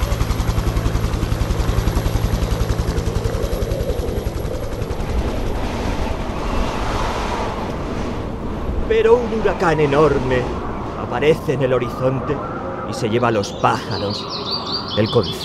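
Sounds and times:
helicopter: 0.0 - 8.5
speech: 8.9 - 15.4.

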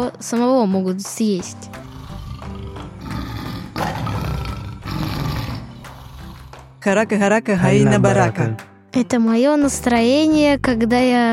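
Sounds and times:
speech: 0.0 - 1.9, 6.8 - 11.3
lion roaring: 1.8 - 6.6.

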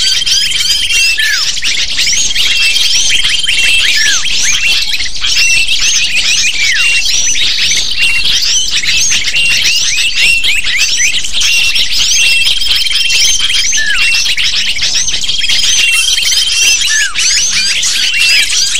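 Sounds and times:
flat whistled tone: 0.0 - 18.7
lovebird flock chirping: 0.0 - 18.7.

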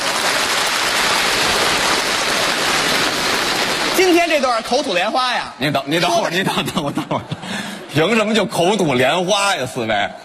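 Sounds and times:
audience applause: 0.0 - 5.2
speech: 4.0 - 10.2
laughter: 6.0 - 8.0.

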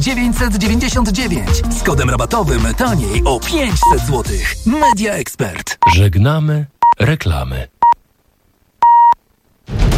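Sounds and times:
speech: 0.0 - 7.7
radio hourly time signal beep: 8.8 - 9.2.

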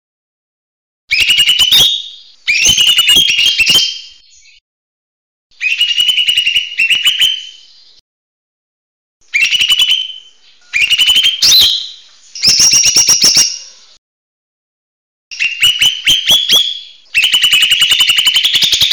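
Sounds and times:
buzzy chattering bird song: 1.1 - 4.6, 5.6 - 8.0, 9.2 - 14.0, 15.3 - 18.9.

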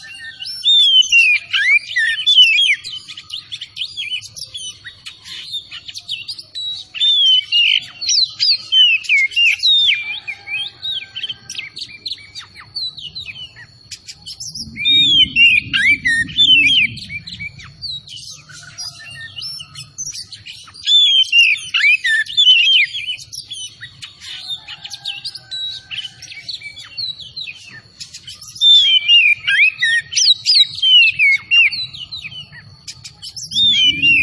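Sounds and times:
Oriental magpie-robin song: 0.0 - 34.2
low rumbling noise: 14.2 - 19.0, 33.3 - 34.2.

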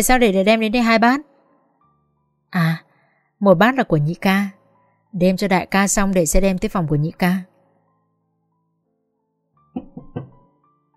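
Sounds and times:
speech: 0.0 - 1.3, 2.5 - 7.5
knocking on a door: 9.8 - 10.5.

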